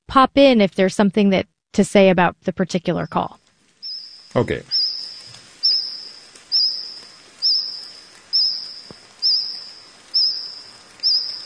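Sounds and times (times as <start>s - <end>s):
speech: 0.1s - 3.4s, 4.3s - 4.8s
cricket singing close to the ground: 3.8s - 11.4s.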